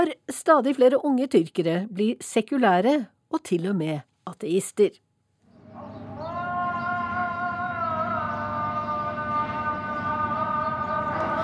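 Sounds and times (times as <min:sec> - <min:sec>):
speech: 0:00.0 - 0:05.0
mosque call to prayer in Istanbul: 0:05.6 - 0:11.4.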